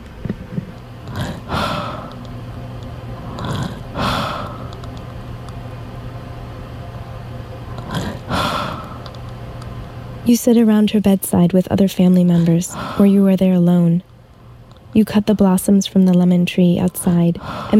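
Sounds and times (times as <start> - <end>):
steady low hum: 0.0 - 17.7
heavy raspy breathing: 1.1 - 2.2, 3.2 - 4.8, 7.7 - 9.1, 12.4 - 13.2, 17.4 - 17.7
speech: 10.3 - 14.1, 14.9 - 17.7.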